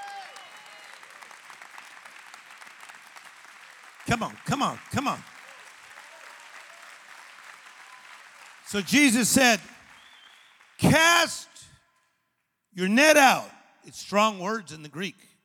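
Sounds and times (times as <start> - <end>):
audience clapping: 0.0 - 11.4
speech: 4.1 - 5.3, 8.7 - 9.8, 10.9 - 11.5, 12.8 - 15.3.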